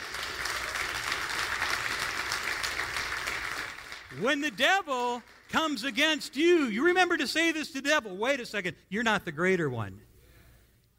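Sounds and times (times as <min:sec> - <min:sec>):
audience hand clapping: 0:00.0 - 0:06.4
speech: 0:04.2 - 0:10.1.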